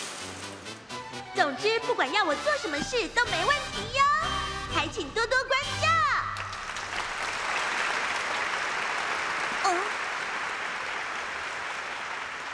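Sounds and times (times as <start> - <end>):
speech: 1.4 - 4.1, 4.8 - 5.7
applause: 6.3 - 12.5.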